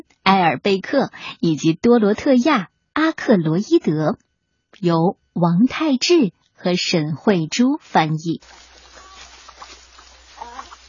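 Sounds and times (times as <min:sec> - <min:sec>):
speech: 0:00.3 - 0:08.7
hen clucking loudly: 0:08.0 - 0:10.8.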